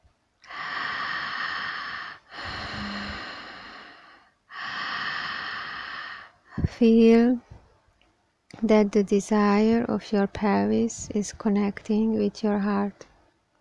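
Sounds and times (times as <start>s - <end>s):
deep breathing during a guided exercise: 0.4s - 6.8s
speech: 6.6s - 7.5s, 8.6s - 13.1s.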